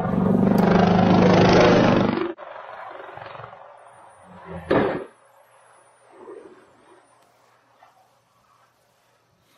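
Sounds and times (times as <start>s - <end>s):
helicopter crashing, roaring rumble: 0.0s - 5.1s.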